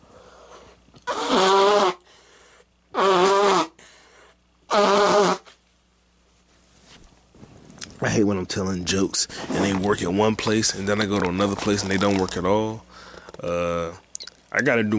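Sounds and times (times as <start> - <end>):
person blowing nose: 1.0 - 2.1, 2.9 - 5.6
speech: 8.1 - 14.0, 14.6 - 14.9.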